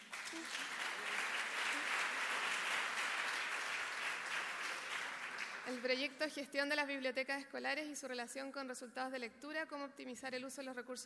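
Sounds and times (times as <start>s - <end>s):
room full of people applauding: 0.0s - 5.9s
speech: 5.7s - 11.0s.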